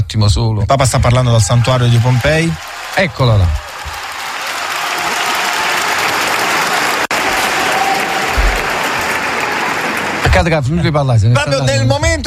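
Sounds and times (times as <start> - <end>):
speech: 0.1 - 3.6, 10.4 - 12.2
audience applause: 1.5 - 10.6.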